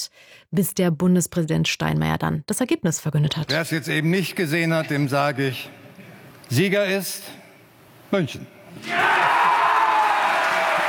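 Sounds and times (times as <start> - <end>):
speech: 0.5 - 5.8, 6.5 - 7.4, 8.1 - 9.2
crowd cheering at result announcement: 8.8 - 10.8.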